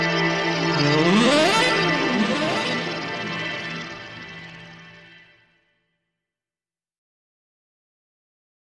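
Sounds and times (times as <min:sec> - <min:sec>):
haunted saxophone: 0:00.1 - 0:05.1.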